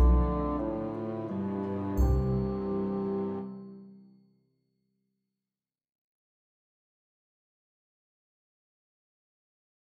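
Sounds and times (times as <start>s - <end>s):
bassoon melody: 0.0s - 3.6s.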